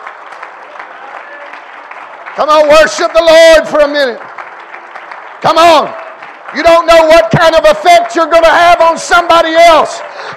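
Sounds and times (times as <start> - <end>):
audience clapping hands: 0.0 - 10.3
speech: 2.4 - 4.3, 5.4 - 10.3.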